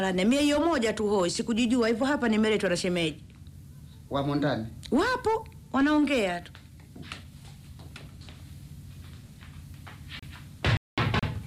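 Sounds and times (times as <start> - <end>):
speech: 0.0 - 3.3, 4.1 - 7.2
knocking on a door: 10.6 - 11.4.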